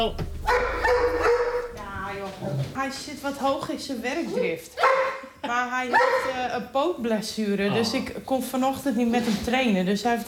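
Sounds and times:
speech: 0.0 - 0.7, 2.4 - 10.2
dog barking: 0.4 - 1.8, 4.8 - 6.4.

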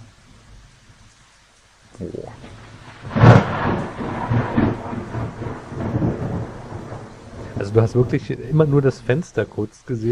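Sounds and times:
rain from thunderstorm video: 0.0 - 10.1
speech: 2.0 - 3.2, 7.7 - 10.1
thunder from thunderstorm video: 2.3 - 8.7.

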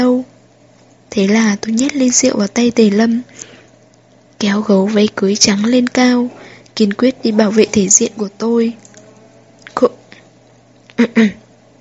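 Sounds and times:
speech: 1.2 - 3.5, 4.4 - 8.8, 9.8 - 10.0, 11.0 - 11.4
deliberate throat clearing: 10.9 - 11.4.

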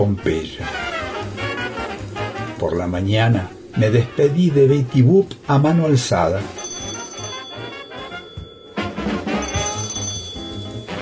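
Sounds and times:
speech: 0.0 - 0.8, 2.6 - 6.6
telephone ringing: 6.4 - 11.0.

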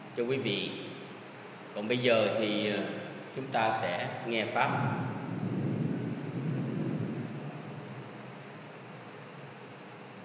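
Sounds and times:
speech: 0.2 - 0.9, 1.8 - 5.1
thunder rumbling during a rainstorm: 3.5 - 9.8.

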